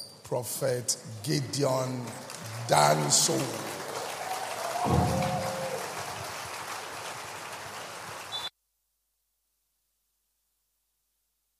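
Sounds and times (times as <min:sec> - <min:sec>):
speech: 0:00.3 - 0:03.8, 0:04.8 - 0:05.4
audience clapping: 0:01.2 - 0:08.5.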